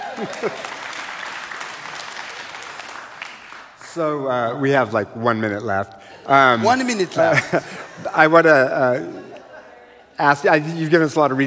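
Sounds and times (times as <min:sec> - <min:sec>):
laughter: 0:00.0 - 0:00.9, 0:05.9 - 0:11.3
audience clapping: 0:00.0 - 0:04.6
speech: 0:00.2 - 0:00.9, 0:03.9 - 0:09.3, 0:10.2 - 0:11.4.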